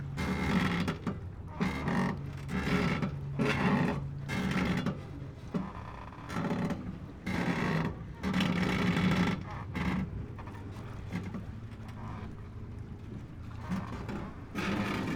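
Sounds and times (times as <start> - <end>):
waves on a pontoon at a Budapest marina: 0.0 - 15.1.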